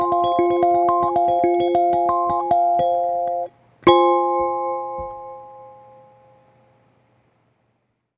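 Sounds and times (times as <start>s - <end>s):
kalimba B5 note in F minor: 0.0s - 6.5s.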